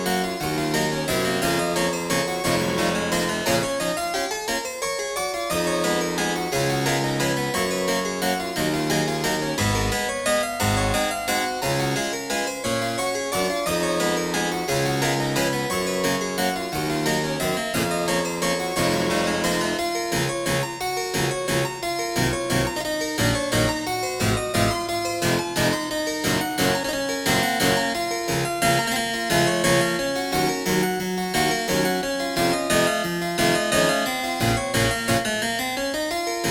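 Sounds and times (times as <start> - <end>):
harpsichord waltz in 31edo tuning: 0.0 - 36.5.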